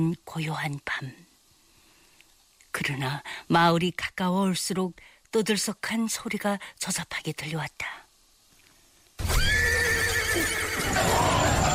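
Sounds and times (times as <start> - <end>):
speech: 0.0 - 1.2, 2.8 - 8.0
horse neighing in the night: 9.2 - 11.7.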